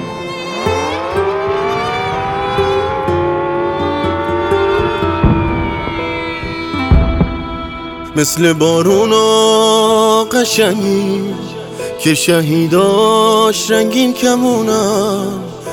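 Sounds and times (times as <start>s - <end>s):
air raid warning siren: 0.0s - 9.2s
speech: 8.2s - 15.5s.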